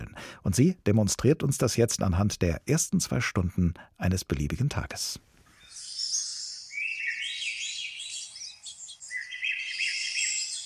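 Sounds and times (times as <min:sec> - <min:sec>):
speech: 0:00.4 - 0:05.3
phone alarm playing birdsong: 0:05.6 - 0:10.6.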